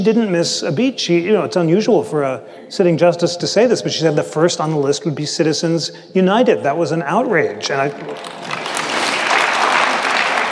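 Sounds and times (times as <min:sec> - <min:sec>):
speech: 0:00.0 - 0:08.6
audience applause at a talk: 0:07.8 - 0:10.5.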